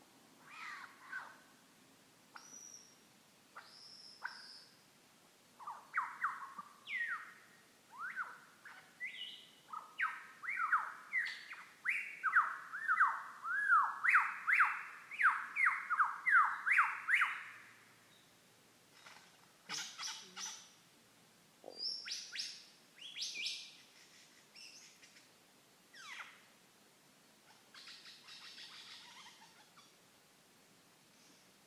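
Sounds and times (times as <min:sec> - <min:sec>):
lyrebird: 0:00.4 - 0:01.4, 0:03.6 - 0:04.8, 0:05.6 - 0:17.8, 0:18.9 - 0:20.8, 0:21.6 - 0:26.5, 0:27.4 - 0:30.0.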